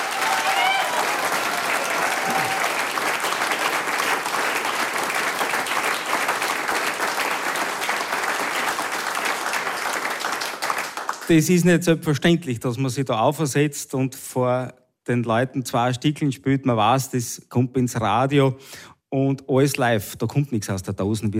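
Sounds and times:
whistles and cheers: 0:00.0 - 0:03.0
large audience applauding: 0:00.0 - 0:11.4
speech: 0:11.3 - 0:21.3.

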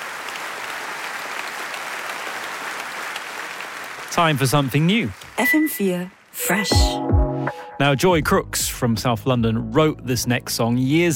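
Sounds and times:
audience applause: 0:00.0 - 0:05.7
speech: 0:04.1 - 0:07.2, 0:07.8 - 0:11.1.

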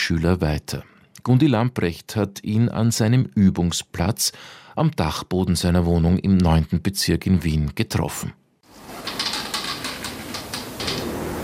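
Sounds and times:
speech: 0:00.1 - 0:08.4
wooden attic floor creaking underfoot: 0:08.7 - 0:11.4.

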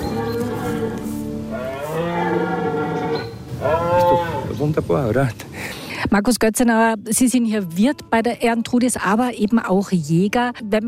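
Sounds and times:
red deer stag roaring during the rut: 0:00.0 - 0:04.5
speech: 0:04.7 - 0:05.5, 0:06.1 - 0:10.8.

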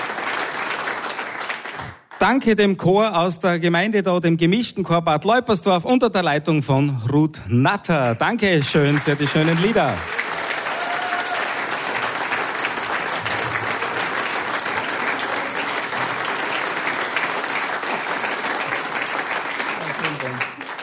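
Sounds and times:
audience applause from a large crowd: 0:00.0 - 0:02.2, 0:08.3 - 0:20.8
speech: 0:02.2 - 0:10.2.

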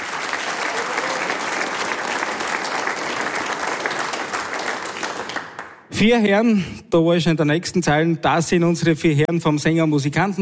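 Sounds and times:
audience applause: 0:00.0 - 0:05.9
speech: 0:06.0 - 0:10.3.

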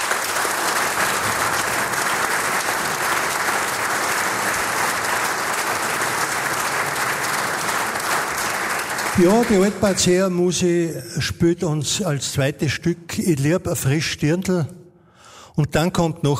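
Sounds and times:
audience applause: 0:00.0 - 0:10.5
speech: 0:09.2 - 0:14.8, 0:15.6 - 0:16.3.

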